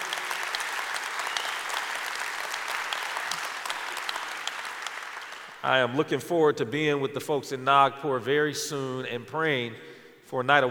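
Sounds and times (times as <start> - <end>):
large crowd applauding: 0.0 - 5.6
speech: 5.6 - 10.7.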